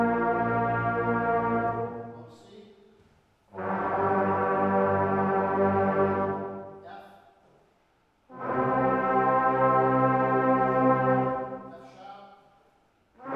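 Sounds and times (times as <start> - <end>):
brass music: 0.0 - 2.4, 3.5 - 6.9, 8.2 - 12.0, 13.0 - 13.3.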